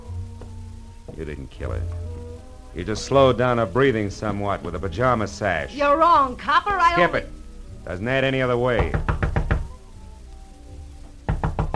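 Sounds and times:
speech: 1.2s - 2.1s, 2.8s - 9.1s
knocking on a door: 8.8s - 9.8s, 11.0s - 11.7s.

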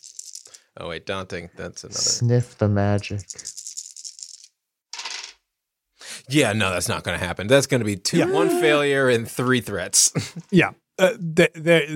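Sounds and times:
two dice clattering across a hard table: 0.0s - 0.6s, 3.2s - 5.4s
speech: 0.8s - 3.5s, 6.3s - 11.9s
laughter: 8.1s - 9.0s.

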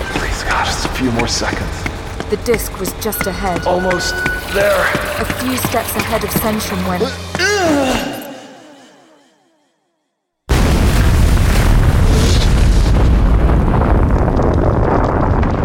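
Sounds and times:
descending tone: 0.0s - 9.4s
speech: 1.0s - 8.1s
stone temple collapsing with crashing rubble: 10.5s - 15.6s.

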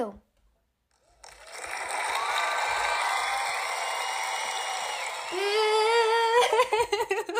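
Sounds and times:
cheering sound effect: 1.0s - 6.4s
laughter: 5.3s - 7.3s.

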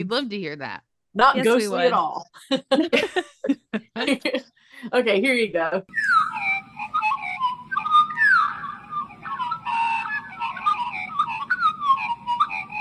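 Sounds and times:
speech: 0.0s - 6.4s
steady low hum: 1.2s - 12.8s
laughter: 1.4s - 4.5s
recorded bird call: 5.9s - 12.8s.

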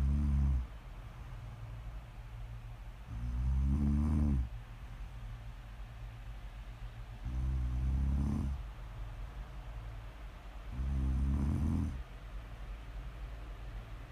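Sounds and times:
deep rumbling snores: 0.0s - 0.7s, 3.0s - 4.5s, 7.2s - 8.7s, 10.7s - 12.0s
low hum and hiss: 0.0s - 14.1s.

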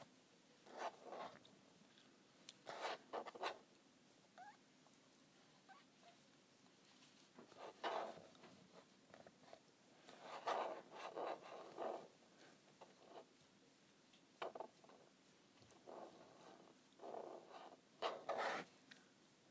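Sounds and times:
scratching on a calculator: 0.7s - 1.4s, 2.7s - 3.7s, 7.4s - 13.4s, 14.4s - 18.7s.

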